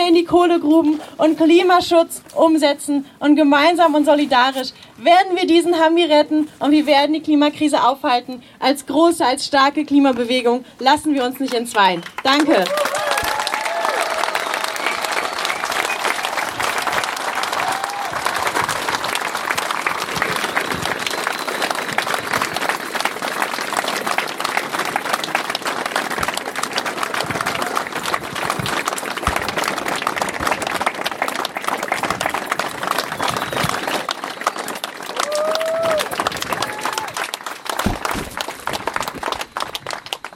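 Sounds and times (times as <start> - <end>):
speech: 0.2 - 12.9
crowd applause: 12.0 - 40.3.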